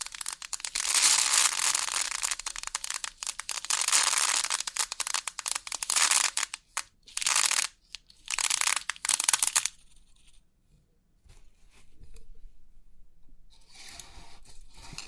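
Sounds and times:
3D pin art bright rushing bursts: 0.0s - 9.8s.

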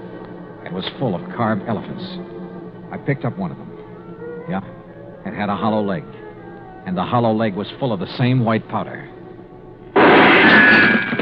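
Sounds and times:
speech: 0.7s - 3.7s, 4.5s - 6.2s, 6.8s - 9.1s
gunshot: 10.0s - 11.2s.

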